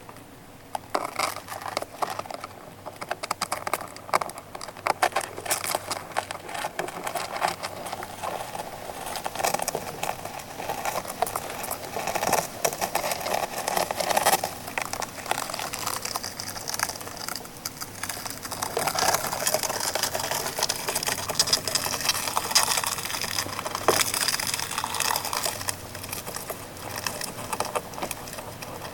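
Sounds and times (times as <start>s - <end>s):
velvet red ant crawling around: 0.8s - 28.9s.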